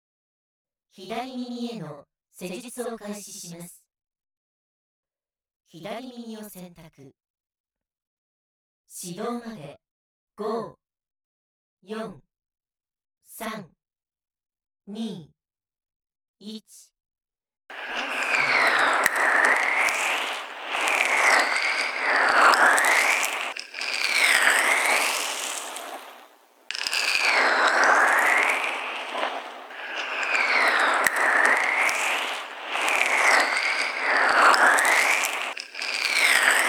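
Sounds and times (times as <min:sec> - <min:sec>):
left ear massage sounds: 0:17.7 - 0:36.6.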